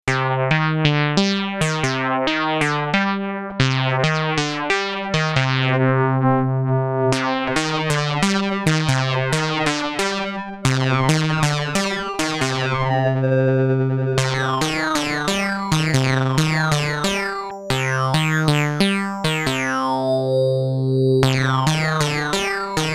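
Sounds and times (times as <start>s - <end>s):
filtered FM synthesizer: 0.1s - 22.9s.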